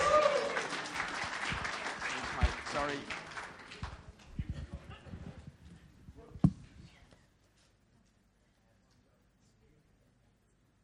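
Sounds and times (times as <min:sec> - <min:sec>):
audience applause: 0:00.0 - 0:04.3
speech: 0:02.8 - 0:03.2.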